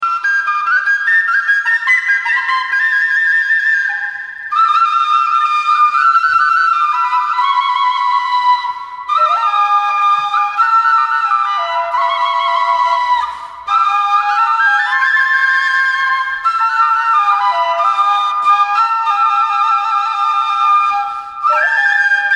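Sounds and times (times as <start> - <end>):
Tatar kurai folk wind instrument melody: 0.0 - 22.3.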